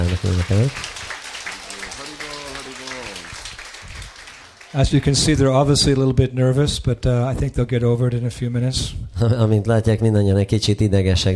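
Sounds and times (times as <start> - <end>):
crowd clapping: 0.0 - 6.1
speech: 0.2 - 1.0, 4.7 - 11.3
laughter: 1.6 - 3.3.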